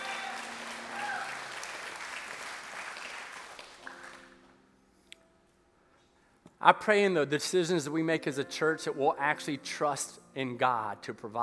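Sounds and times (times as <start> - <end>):
audience clapping: 0.0 - 4.4
speech: 6.6 - 11.4.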